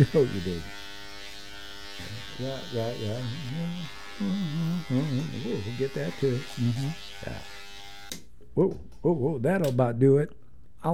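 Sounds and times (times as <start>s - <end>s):
speech: 0.0s - 0.8s, 2.0s - 7.6s, 8.6s - 10.9s
electric shaver buzzing while someone finishes shaving: 0.0s - 8.2s.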